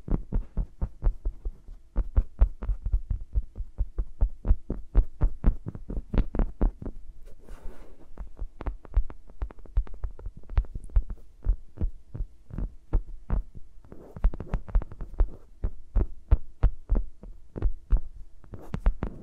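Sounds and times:
microphones rubbed and tapped between fingers: 0:00.0 - 0:19.2.

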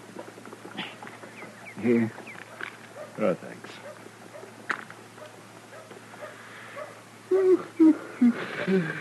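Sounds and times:
speech: 0:01.8 - 0:02.2, 0:03.2 - 0:03.5
dog whimpering: 0:07.3 - 0:09.0.

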